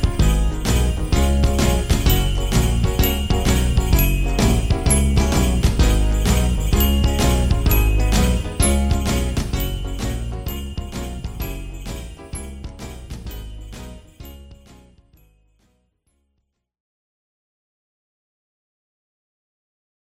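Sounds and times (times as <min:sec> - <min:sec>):
instrumental music: 0:00.0 - 0:15.8.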